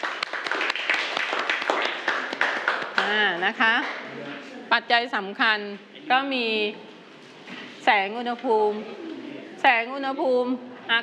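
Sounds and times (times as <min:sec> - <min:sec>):
class clapping hands: 0:00.0 - 0:04.0
speech: 0:03.1 - 0:06.8, 0:07.5 - 0:09.0, 0:09.6 - 0:11.0.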